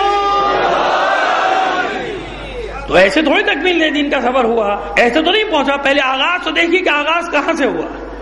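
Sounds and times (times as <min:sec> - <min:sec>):
crowd chanting religious slogans at a religious gathering: 0:00.1 - 0:02.5
speech: 0:02.9 - 0:08.1.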